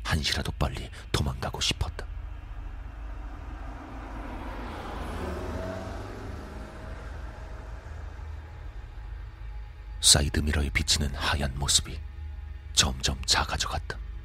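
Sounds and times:
speech: 0.1s - 2.1s, 10.0s - 12.1s, 12.8s - 14.0s
car accelerating hard from a traffic light on a rural bypass road: 1.5s - 10.1s.

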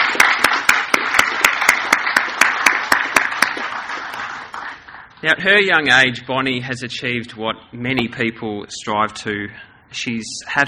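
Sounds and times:
audience applause: 0.0s - 5.1s
speech: 5.2s - 10.6s.

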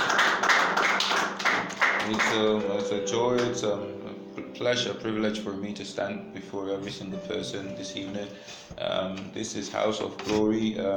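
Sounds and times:
crowd applauding: 0.0s - 2.6s
speech: 2.1s - 10.9s.

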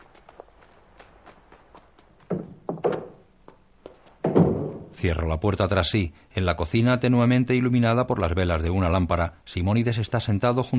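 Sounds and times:
running footsteps into a house: 0.0s - 4.8s
speech: 5.0s - 10.7s.

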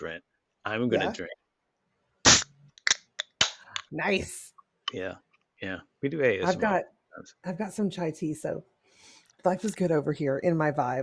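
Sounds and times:
speech: 0.0s - 1.4s, 3.9s - 11.0s
clap-like cracks: 2.3s - 3.9s.

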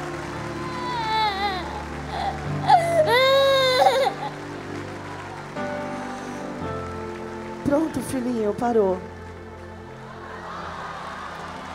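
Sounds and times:
little boy crying: 0.7s - 4.4s
speech: 8.2s - 9.1s.

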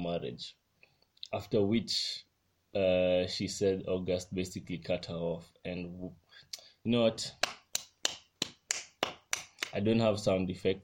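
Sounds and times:
speech: 0.2s - 0.6s, 1.3s - 7.6s, 9.7s - 10.8s
person clapping hands: 7.4s - 9.8s.

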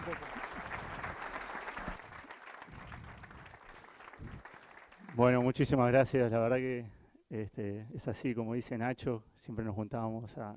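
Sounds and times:
audience applause welcoming a speaker: 0.0s - 5.5s
speech: 5.2s - 10.5s.

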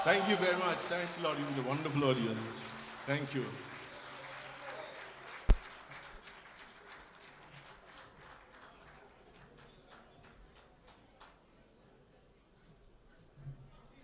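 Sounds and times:
speech: 0.0s - 3.8s
audience applause: 0.0s - 10.0s.

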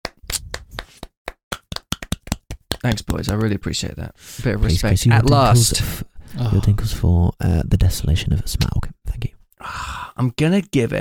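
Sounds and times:
hand clapping: 0.0s - 3.8s
speech: 2.8s - 10.9s.

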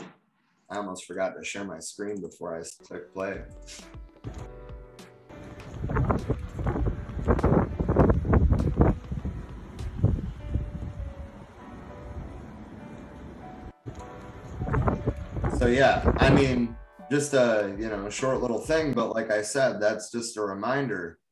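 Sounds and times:
speech: 0.7s - 4.5s, 6.1s - 7.5s, 15.7s - 21.2s
storm wind over flooded roads: 5.4s - 16.8s
rain from a storm rain band over flooded roads in southern Alabama: 11.3s - 15.5s.

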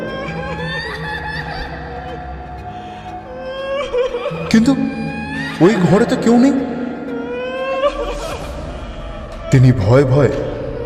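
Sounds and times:
small child crying: 0.0s - 6.4s, 7.0s - 9.5s
speech: 4.5s - 5.0s, 5.6s - 6.7s, 9.5s - 10.4s.

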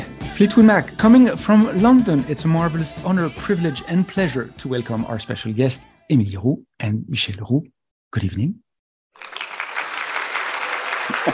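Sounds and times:
speech: 0.4s - 8.6s
applause: 9.2s - 11.3s.

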